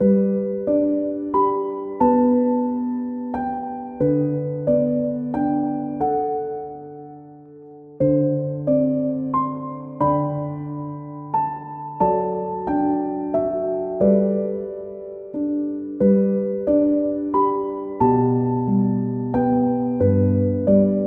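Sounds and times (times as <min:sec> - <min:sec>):
piano lullaby: 0:00.0 - 0:21.0.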